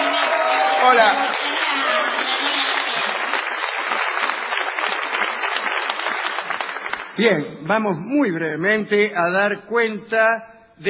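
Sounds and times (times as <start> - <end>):
audience ovation: 0.0 - 7.2
speech: 0.8 - 1.6, 7.2 - 10.8.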